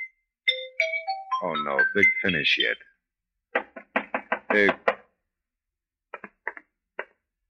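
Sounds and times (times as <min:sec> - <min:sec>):
bright xylophone sting: 0:00.5 - 0:02.8
speech: 0:01.4 - 0:02.9, 0:04.5 - 0:04.8.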